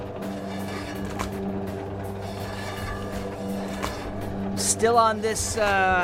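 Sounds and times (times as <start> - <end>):
meat slicer humming: 0.0 - 4.7
speech: 4.6 - 6.0.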